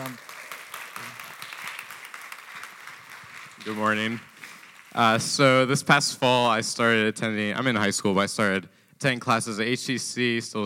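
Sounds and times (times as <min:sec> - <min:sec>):
crowd applauding: 0:00.0 - 0:05.6
speech: 0:03.6 - 0:04.3, 0:05.0 - 0:10.6.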